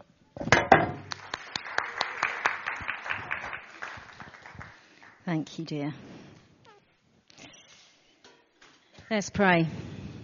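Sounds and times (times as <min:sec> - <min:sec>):
audience applause: 0:01.1 - 0:05.2
speech: 0:05.3 - 0:06.1, 0:09.1 - 0:10.0.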